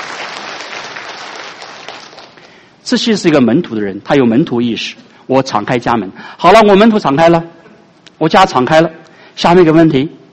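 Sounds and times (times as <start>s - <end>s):
congregation applauding church members hosting Bible study: 0.0s - 2.7s
speech: 2.9s - 7.6s, 8.2s - 10.2s.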